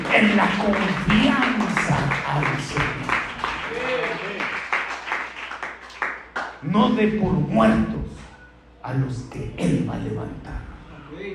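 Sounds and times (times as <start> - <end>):
applause: 0.0 - 6.7
speech: 0.2 - 1.6, 6.8 - 8.0, 8.9 - 11.3.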